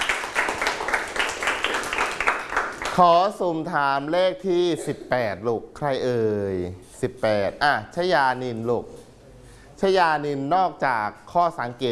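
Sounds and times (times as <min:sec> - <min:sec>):
group of students clapping in a classroom: 0:00.0 - 0:03.2
speech: 0:03.0 - 0:09.0, 0:09.8 - 0:11.9.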